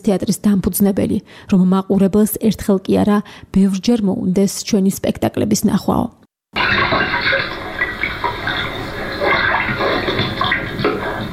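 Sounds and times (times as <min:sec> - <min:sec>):
speech: 0:00.0 - 0:07.1
gushing water sound effect in a shadow theatre performance: 0:06.6 - 0:11.3.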